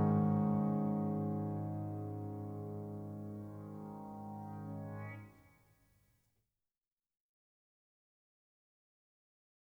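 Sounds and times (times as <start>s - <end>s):
lonely piano music: 0.0s - 5.2s.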